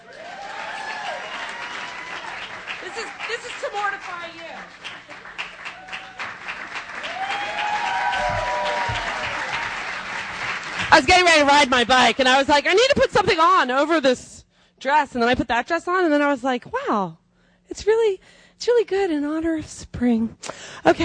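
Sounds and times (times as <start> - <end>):
audience applause: 0.0 - 12.4
speech: 3.0 - 5.0, 10.9 - 21.0.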